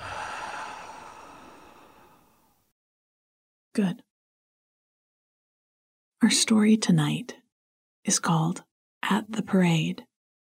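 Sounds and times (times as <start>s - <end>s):
slow soft breath out: 0.0s - 2.6s
speech: 3.8s - 4.1s, 6.2s - 7.4s, 8.0s - 10.1s.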